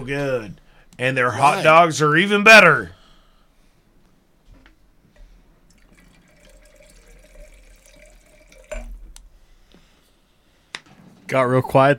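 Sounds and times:
speech: 0.0 - 3.0, 11.3 - 11.9
vodka pouring into a glass: 5.7 - 9.2.

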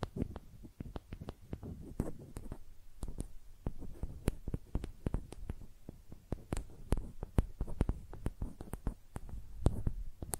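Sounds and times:
makeup being tapped and scratched: 0.0 - 10.3.

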